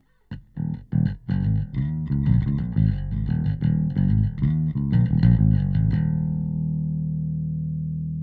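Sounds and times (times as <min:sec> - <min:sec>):
bass sound: 0:00.3 - 0:08.2.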